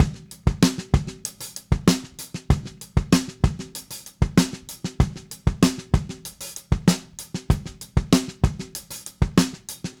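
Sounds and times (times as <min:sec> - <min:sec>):
70s analog funk drums: 0:00.0 - 0:09.9.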